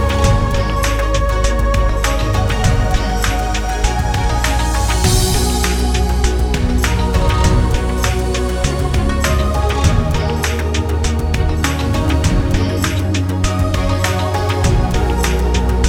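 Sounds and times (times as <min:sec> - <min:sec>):
ethnic ambient music: 0:00.0 - 0:15.8.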